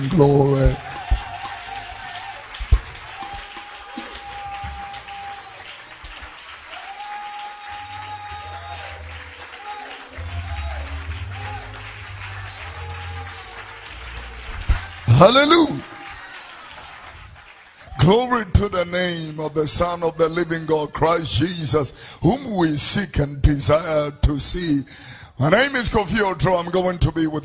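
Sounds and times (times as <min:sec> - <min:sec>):
speech: 0:00.0 - 0:00.9, 0:15.2 - 0:15.9, 0:18.1 - 0:27.4
audience clapping hands: 0:00.0 - 0:21.5.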